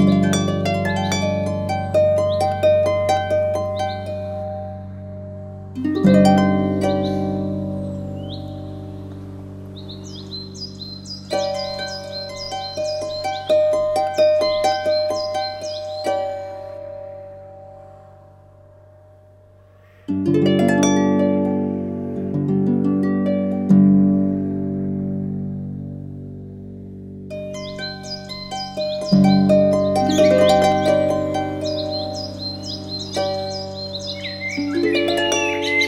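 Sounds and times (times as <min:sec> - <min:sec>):
classic harp playing in G major, C minor and D minor: 0:00.0 - 0:35.8.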